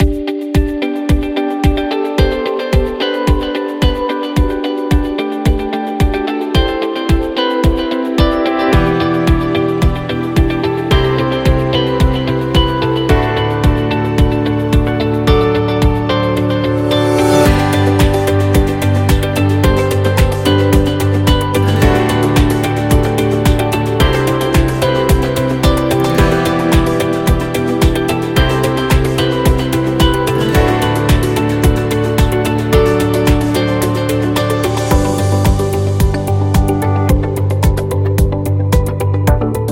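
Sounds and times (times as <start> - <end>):
corporate music: 0.0 - 39.7.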